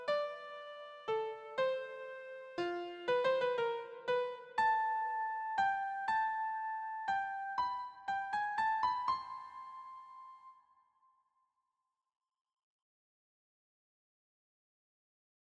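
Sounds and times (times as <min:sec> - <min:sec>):
waltz on keyboard: 0:00.0 - 0:10.3.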